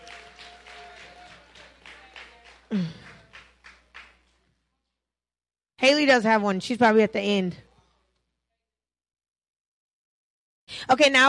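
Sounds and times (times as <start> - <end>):
group clapping: 0.0 - 4.7
speech: 2.7 - 3.0, 5.9 - 7.7, 10.9 - 11.2.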